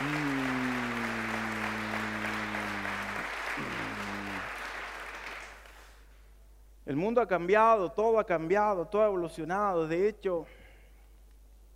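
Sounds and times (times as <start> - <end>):
applause: 0.0 - 6.1
speech: 6.9 - 10.6.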